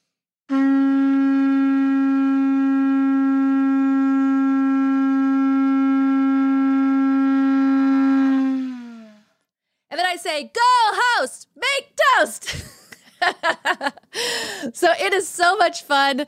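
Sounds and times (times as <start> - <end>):
shofar blown in a long blast: 0.5 - 9.4
speech: 10.4 - 11.4, 13.4 - 16.2
laughter: 12.5 - 14.2.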